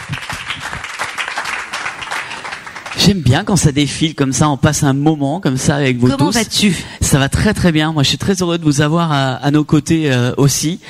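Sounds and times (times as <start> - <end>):
audience applauding a guest: 0.0 - 3.2
speech: 3.0 - 10.8.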